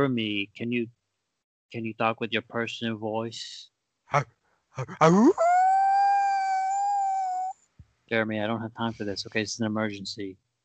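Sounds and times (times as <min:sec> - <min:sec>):
speech: 0:00.0 - 0:01.0, 0:01.7 - 0:05.5, 0:08.1 - 0:10.4
voice imitating a wolf howl: 0:04.8 - 0:07.5.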